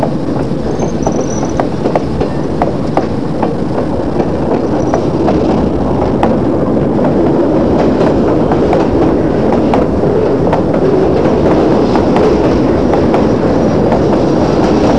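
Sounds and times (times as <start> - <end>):
train passing: 0.0 - 14.9.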